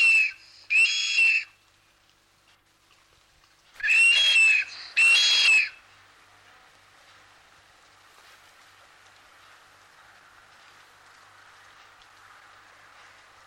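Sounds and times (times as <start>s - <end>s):
blue duck giving breathy high whistled calls: 0.0s - 1.5s, 3.8s - 5.8s.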